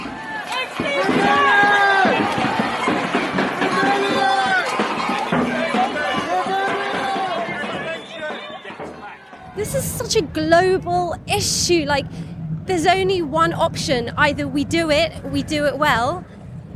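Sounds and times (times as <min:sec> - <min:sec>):
crowd of climate protesters at a demonstration: 0:00.0 - 0:09.6
speech: 0:10.2 - 0:16.3.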